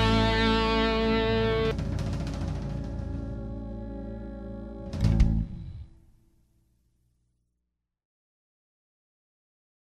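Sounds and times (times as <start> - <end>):
blues music: 0.0 - 6.0.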